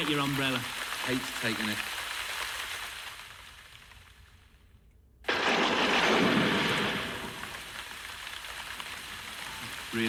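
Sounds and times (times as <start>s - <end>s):
speech: 0.0s - 2.0s
thunderstorm with rain: 5.3s - 10.0s.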